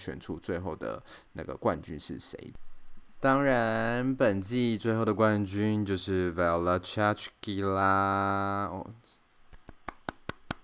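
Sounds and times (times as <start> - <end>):
speech: 0.0 - 9.2
one person clapping hands: 9.5 - 10.6.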